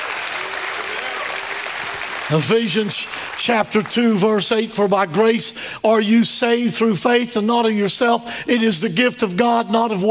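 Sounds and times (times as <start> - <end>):
large group applauding: 0.0 - 3.9
speech: 2.3 - 10.1.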